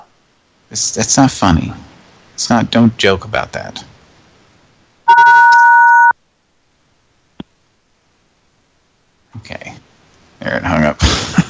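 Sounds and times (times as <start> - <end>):
speech: 0.7 - 3.9, 10.4 - 11.2
telephone ringing with an incoming call: 5.1 - 6.2.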